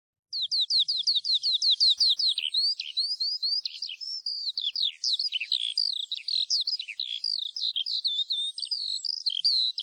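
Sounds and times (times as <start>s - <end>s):
Eurasian skylark singing: 0.3s - 9.8s.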